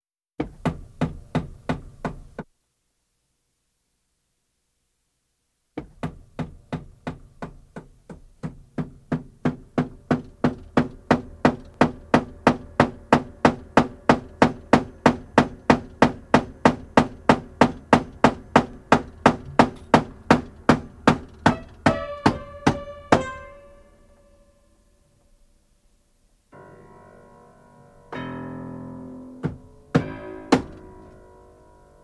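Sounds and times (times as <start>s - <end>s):
piano piece: 9.9s - 24.9s, 26.5s - 32.0s.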